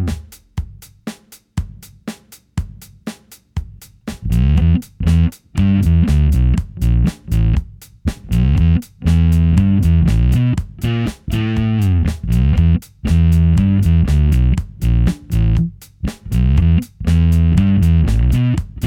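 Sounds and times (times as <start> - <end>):
bass guitar played finger style through tube overdrive and amp simulator: 0.0 - 0.3, 4.2 - 18.8
drum loop: 0.0 - 18.8.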